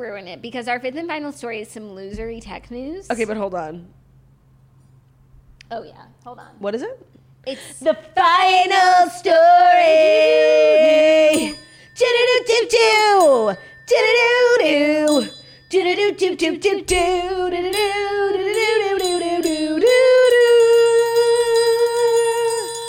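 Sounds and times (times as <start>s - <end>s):
speech: 0.0s - 4.0s, 5.7s - 18.7s
electronic school bell chime melody: 11.3s - 22.8s.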